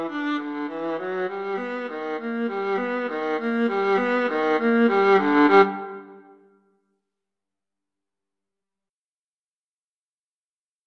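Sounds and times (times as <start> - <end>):
violin and viola duet playing a rag: 0.0 - 6.2.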